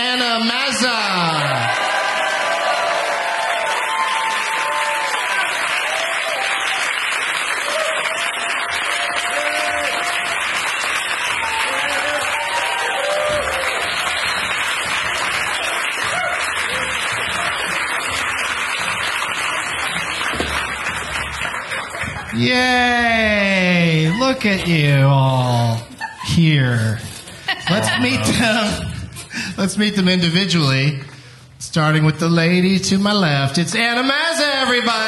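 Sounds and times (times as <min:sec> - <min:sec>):
speech: 0:00.0 - 0:01.6, 0:22.4 - 0:27.1, 0:27.7 - 0:28.9, 0:29.6 - 0:31.0, 0:31.7 - 0:35.0
studio audience applause on a live show: 0:01.2 - 0:24.1
laughter: 0:21.6 - 0:23.2, 0:25.5 - 0:29.4.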